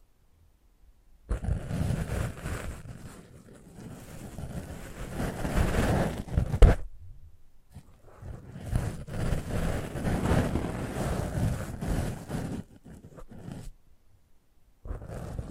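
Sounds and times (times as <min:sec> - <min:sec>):
rustling rubbing treatment sounds on a microphone: 0:01.3 - 0:06.9, 0:07.7 - 0:13.8, 0:14.9 - 0:15.4.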